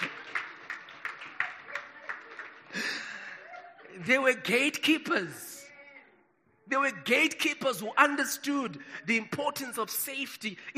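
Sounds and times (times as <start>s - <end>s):
audience clapping hands: 0.0s - 4.4s
speech: 4.0s - 5.5s, 6.7s - 10.7s.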